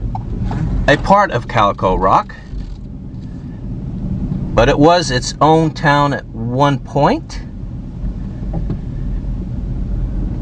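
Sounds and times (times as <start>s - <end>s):
car cruising slowly into a ghost town at Calico Rock: 0.0s - 10.4s
speech: 0.9s - 2.5s, 4.6s - 7.5s.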